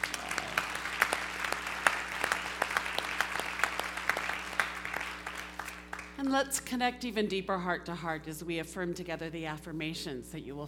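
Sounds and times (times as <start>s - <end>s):
audience applause: 0.0s - 6.2s
speech: 6.2s - 10.6s.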